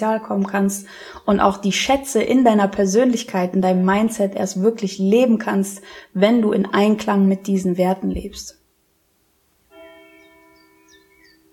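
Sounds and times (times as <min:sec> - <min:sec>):
speech: 0:00.0 - 0:08.6
church bell ringing: 0:09.7 - 0:11.5.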